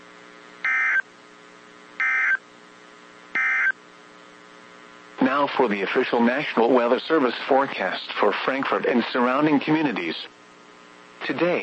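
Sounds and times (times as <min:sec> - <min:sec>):
emergency alert system tones: 0:00.7 - 0:01.0, 0:02.0 - 0:02.4, 0:03.4 - 0:03.8
speech: 0:05.3 - 0:10.4, 0:11.2 - 0:11.6.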